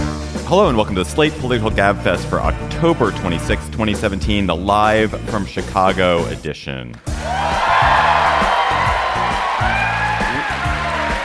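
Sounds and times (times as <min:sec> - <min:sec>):
speech: 0:00.5 - 0:07.6
rowdy theater crowd cheering and whooping: 0:07.2 - 0:11.2.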